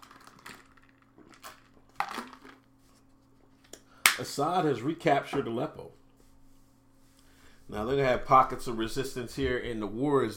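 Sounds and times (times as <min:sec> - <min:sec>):
handling clicks and crinkles while taking a drink of water: 0:00.0 - 0:02.7
low steady hum: 0:00.0 - 0:10.3
speech: 0:04.2 - 0:06.0, 0:07.7 - 0:10.3.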